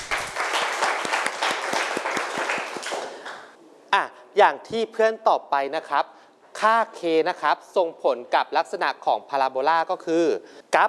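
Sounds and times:
classroom students applauding: 0:00.0 - 0:03.6
speech: 0:04.4 - 0:10.8.

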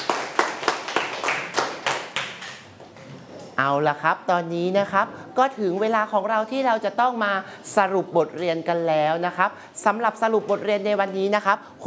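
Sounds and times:
students clapping for classmates: 0:00.0 - 0:02.8
speech: 0:03.6 - 0:11.8.

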